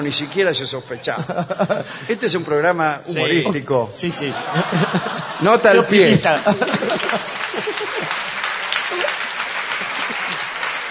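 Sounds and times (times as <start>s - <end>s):
speech: 0.0s - 8.2s
laughter: 1.0s - 2.5s, 3.1s - 10.6s
audience applause: 5.8s - 10.8s.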